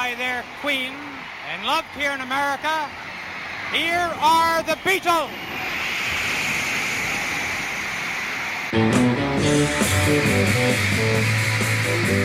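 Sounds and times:
crowd roaring and screaming at a concert in New York: 0.0s - 12.2s
speech: 0.1s - 3.1s, 3.7s - 5.6s, 8.7s - 12.2s.

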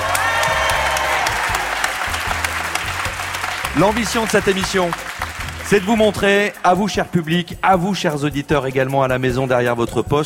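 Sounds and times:
live radio show audience applauding at the Alcazar library in Marseille: 0.0s - 6.6s
speech: 3.8s - 5.1s, 5.7s - 10.2s.

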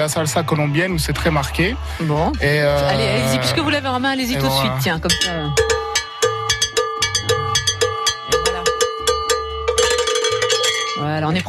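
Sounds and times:
speech: 0.0s - 6.1s, 11.3s - 11.4s
salsa cowbell (campana) being struck: 4.4s - 11.4s
low drum pattern: 4.8s - 11.4s.

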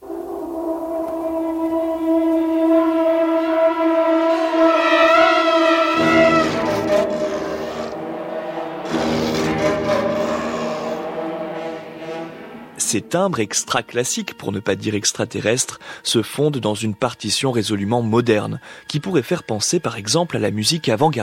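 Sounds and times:
dense loud orchestral swell: 0.0s - 15.3s
low trembling drones from serpent and didgeridoo: 0.0s - 16.0s
speech: 12.9s - 21.2s.

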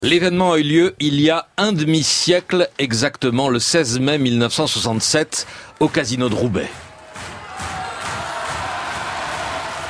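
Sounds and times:
speech: 0.0s - 6.9s
concert crowd of 1800 cheering at the Casino de Roubaix: 5.4s - 9.8s.

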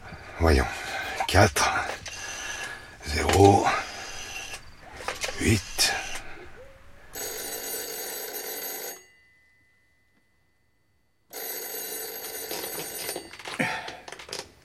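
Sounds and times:
speech: 0.4s - 1.9s, 3.1s - 3.8s
telephone bell ringing: 7.1s - 10.2s, 11.3s - 13.6s.

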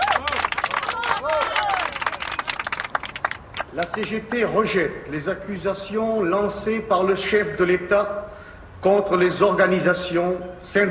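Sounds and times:
scattered voices and cheers: 0.0s - 2.5s
large crowd applauding: 0.0s - 4.6s
speech: 3.8s - 10.8s.

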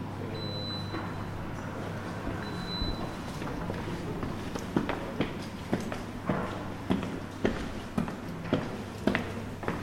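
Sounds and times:
low hum: 0.0s - 9.8s
footsteps climbing the grand staircase of a former hospital in Troyes: 3.4s - 9.8s.

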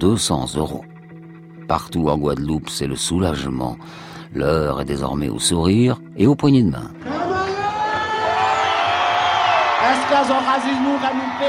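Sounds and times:
speech: 0.0s - 1.0s, 1.7s - 7.2s, 10.1s - 11.4s
crowd cheering for joy: 7.0s - 11.4s.

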